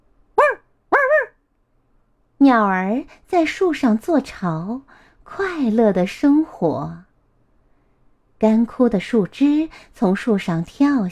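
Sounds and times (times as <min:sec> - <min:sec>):
dog barking while chasing a cat: 0:00.4 - 0:01.4
speech: 0:02.4 - 0:07.1, 0:08.4 - 0:11.0.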